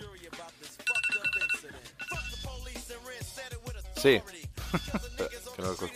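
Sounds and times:
telephone bell ringing with an incoming call: 0.8s - 2.5s
speech: 4.0s - 5.9s
laughter: 4.6s - 5.3s.

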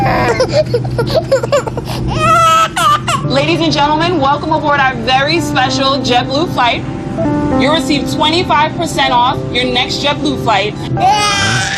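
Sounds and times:
baby crying on a JetBlue flight: 0.0s - 3.3s, 11.0s - 11.7s
speech: 0.4s - 1.6s, 3.4s - 11.6s.

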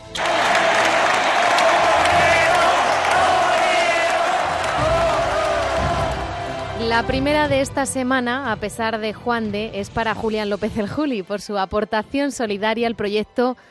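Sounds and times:
bullring crowd ovation: 0.0s - 7.2s
speech: 7.0s - 13.6s.

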